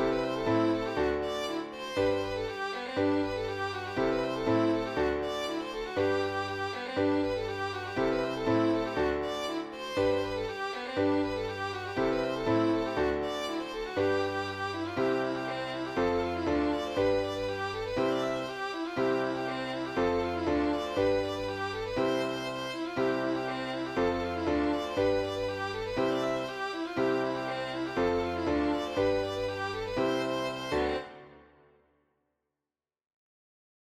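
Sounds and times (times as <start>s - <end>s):
schottische dance music: 0.1s - 31.2s.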